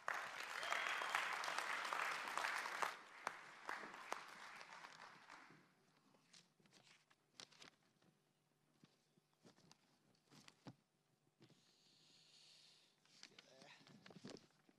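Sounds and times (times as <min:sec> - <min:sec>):
church congregation clapping to welcome a speaker: 0:00.0 - 0:05.7.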